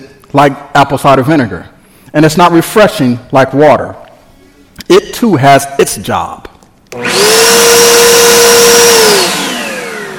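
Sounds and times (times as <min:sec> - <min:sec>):
speech: 0:00.0 - 0:04.0, 0:04.9 - 0:08.1
leaf blower motor running: 0:06.9 - 0:10.1.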